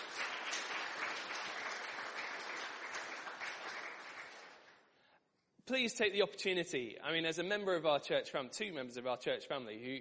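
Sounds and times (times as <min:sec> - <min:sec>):
audience applause: 0:00.0 - 0:04.8
speech: 0:05.7 - 0:09.9.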